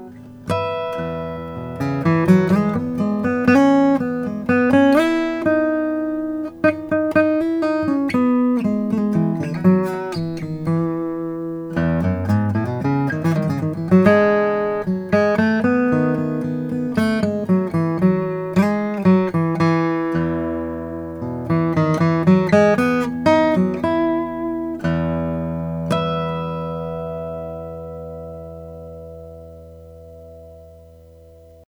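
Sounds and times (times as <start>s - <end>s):
acoustic guitar: 0.0s - 31.6s.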